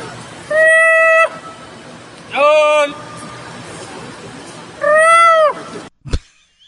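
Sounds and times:
monkey call with whistle-like hoots: 0.5 - 1.4, 4.8 - 5.6.

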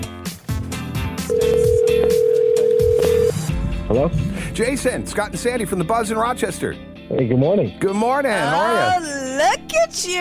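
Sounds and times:
telephone ringing tone of outgoing call: 1.3 - 3.5
speech: 4.0 - 10.1.

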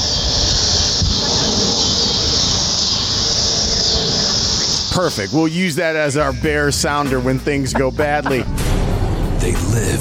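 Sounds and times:
cicadas buzzing: 0.0 - 6.0
speech: 5.0 - 8.6, 9.4 - 9.9.

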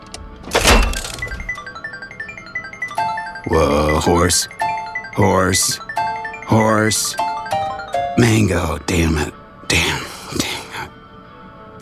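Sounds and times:
slot machine mechanical clunk: 0.0 - 8.5
speech: 3.4 - 5.9, 6.5 - 7.3, 8.2 - 10.4.

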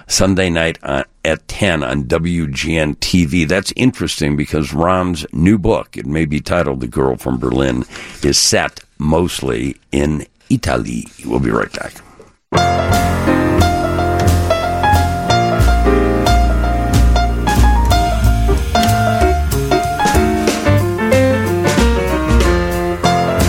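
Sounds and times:
speech: 0.1 - 13.3
instrumental music by a Chicago musician: 12.5 - 23.4.

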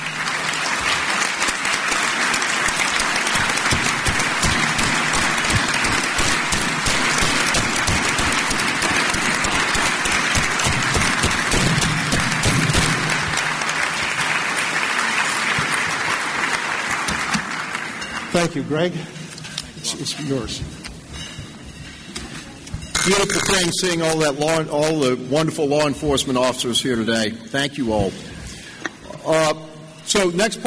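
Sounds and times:
audience applause: 0.0 - 18.3
speech: 18.5 - 19.2, 19.9 - 20.8, 23.1 - 28.2, 29.3 - 30.6.

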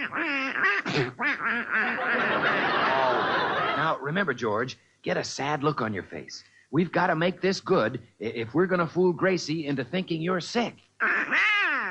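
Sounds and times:
duck quacking: 0.0 - 2.5, 11.0 - 11.8
speech: 0.0 - 2.6, 3.8 - 11.5
laughter: 1.8 - 4.1.

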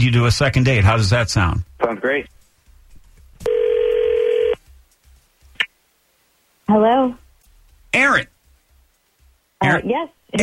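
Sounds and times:
speech: 0.0 - 2.4, 6.7 - 7.2, 7.9 - 8.3, 9.6 - 10.4
electronic ringing tone from an outgoing phone call: 3.4 - 4.6.

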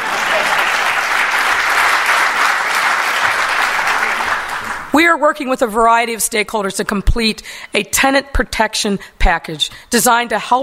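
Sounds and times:
audience applause: 0.0 - 4.9
speech: 5.0 - 10.6.

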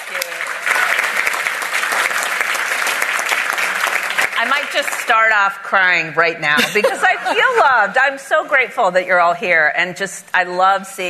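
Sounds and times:
audience applause: 0.0 - 5.4
speech: 4.4 - 11.0
laughter: 6.6 - 7.9.

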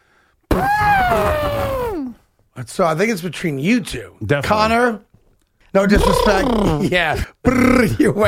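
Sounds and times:
person imitating an elephant's trumpet: 0.5 - 2.2, 5.9 - 8.0
speech: 2.6 - 5.1, 5.7 - 8.2.

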